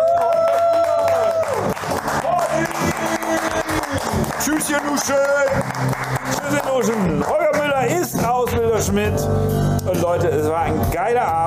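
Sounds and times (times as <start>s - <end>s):
small group clapping: 0.0s - 8.5s
speech: 4.5s - 6.2s, 8.8s - 11.4s.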